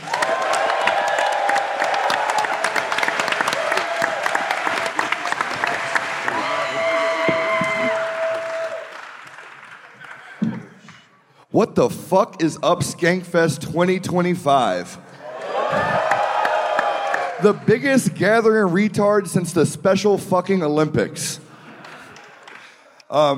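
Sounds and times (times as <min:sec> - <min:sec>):
cheers and whoops: 0:00.0 - 0:09.1, 0:15.2 - 0:17.6
crowd applause: 0:00.0 - 0:10.9, 0:15.2 - 0:17.7, 0:21.7 - 0:22.8
speech: 0:11.6 - 0:15.0, 0:17.4 - 0:21.4, 0:23.1 - 0:23.3.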